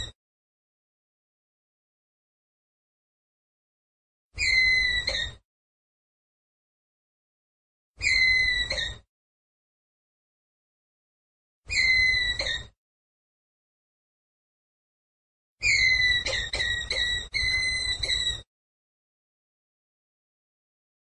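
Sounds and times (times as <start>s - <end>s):
ground squirrel whistled call: 4.4s - 5.4s, 8.0s - 9.0s, 11.7s - 12.7s, 15.6s - 18.4s.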